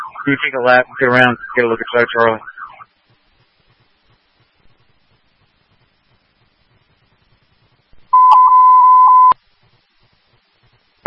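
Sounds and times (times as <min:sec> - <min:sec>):
speech: 0:00.2 - 0:02.6
Fairfax fire department dispatch testing tones: 0:08.1 - 0:09.4.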